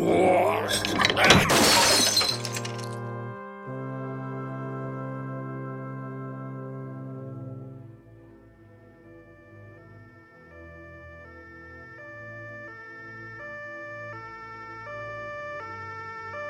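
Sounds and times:
glass display cabinet shattering from a thrown kilogram weight: 0:00.6 - 0:03.0.

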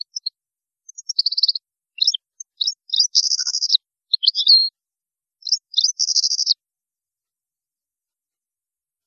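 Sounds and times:
European goldfinch twittering: 0:01.0 - 0:04.7, 0:05.5 - 0:06.5.

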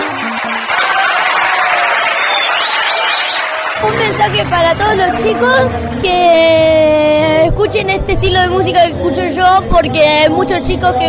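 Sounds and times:
audience clapping for a singer on a children's radio show: 0:00.0 - 0:06.1
crowd cheering: 0:00.0 - 0:06.4
speech: 0:03.8 - 0:11.0.

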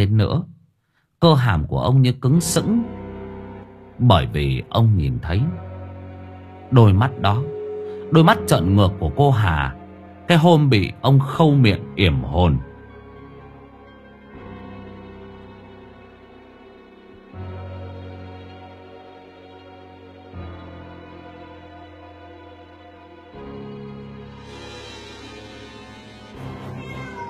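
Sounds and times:
speech: 0:00.0 - 0:00.5, 0:01.2 - 0:03.0, 0:04.0 - 0:05.7, 0:06.7 - 0:12.7
cat meowing: 0:26.5 - 0:27.2.

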